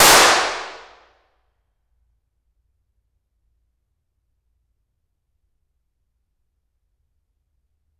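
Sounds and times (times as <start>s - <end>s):
impulse response in Elveden Hall Suffolk England: 0.0s - 0.9s.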